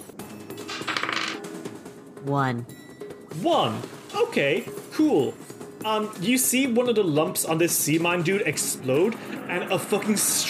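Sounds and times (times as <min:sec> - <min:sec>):
dice rolling on a hard tabletop: 0:00.6 - 0:01.5
speech: 0:02.2 - 0:02.8, 0:03.4 - 0:10.4.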